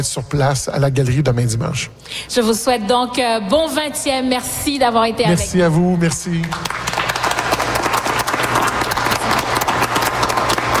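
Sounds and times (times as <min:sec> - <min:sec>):
speech: 0:00.0 - 0:07.0
audience applause in the Atrium of Radio-Canada in Toronto: 0:06.2 - 0:10.7.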